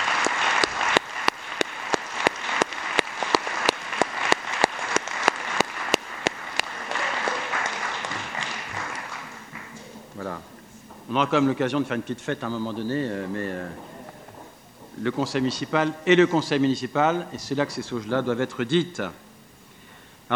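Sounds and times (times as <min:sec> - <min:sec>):
one sharp clapper keeping an even beat: 0:00.0 - 0:10.0
council members applauding a departing official: 0:00.0 - 0:10.6
speech: 0:11.1 - 0:13.9, 0:15.0 - 0:19.2.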